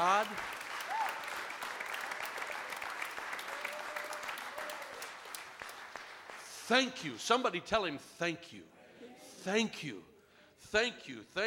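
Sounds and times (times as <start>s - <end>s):
audience clapping hands: 0.0s - 7.2s
speech: 6.7s - 8.8s, 9.4s - 11.4s.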